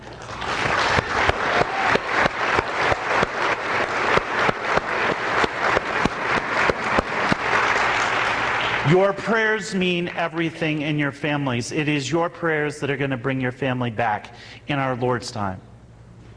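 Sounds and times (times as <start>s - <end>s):
audience applause: 0.0s - 9.2s
speech: 8.9s - 15.7s.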